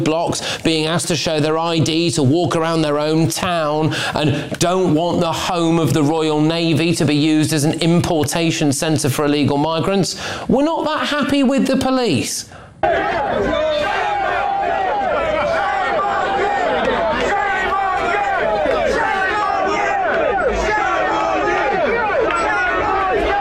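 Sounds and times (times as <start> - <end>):
speech: 0.0 - 14.8
crowd shouting shame at police officers: 12.8 - 23.3.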